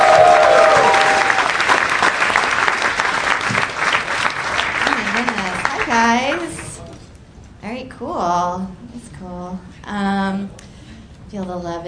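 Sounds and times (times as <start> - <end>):
audience applause greeting a comic: 0.0 - 6.8.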